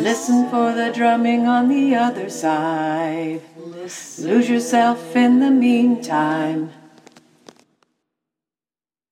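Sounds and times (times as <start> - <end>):
tenor singing: 0.0 - 7.0.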